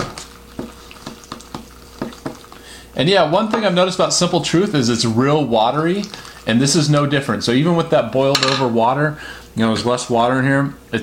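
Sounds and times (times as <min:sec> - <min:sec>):
sauce mixed through noodles: 0:00.0 - 0:03.0, 0:03.6 - 0:07.0
low steady hum: 0:00.0 - 0:11.0
speech: 0:03.0 - 0:11.0.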